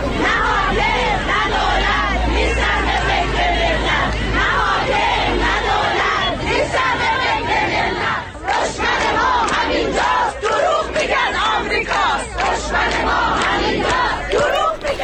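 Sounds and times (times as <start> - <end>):
low rumble: 0.0 - 1.7
crowd of protesters chanting slogans: 0.0 - 15.0.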